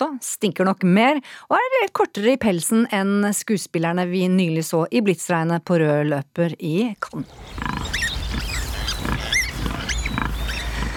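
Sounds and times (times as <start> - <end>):
speech: 0.1 - 8.0
high-pitched squeaks and squeals: 7.1 - 10.9
sow grunting: 7.2 - 10.9.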